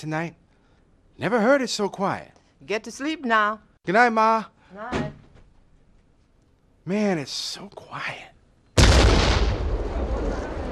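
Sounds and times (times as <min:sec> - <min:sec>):
speech: 0:00.0 - 0:00.4, 0:01.2 - 0:05.1, 0:06.9 - 0:08.3
explosion right outside: 0:08.8 - 0:10.6.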